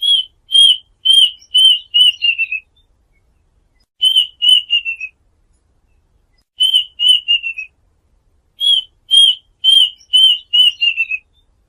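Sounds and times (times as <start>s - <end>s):
duck whistled calls: 0.0s - 2.7s, 4.0s - 5.2s, 6.6s - 7.7s, 8.6s - 11.3s.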